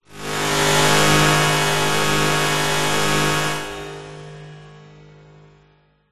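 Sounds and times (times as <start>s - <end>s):
harsh metallic short drone with reverb: 0.1s - 5.0s.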